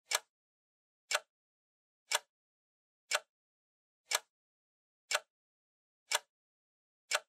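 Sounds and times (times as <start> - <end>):
clock second hand ticking: 0.1 - 0.3, 2.1 - 2.3, 4.1 - 4.3, 6.1 - 6.3, 7.1 - 7.2.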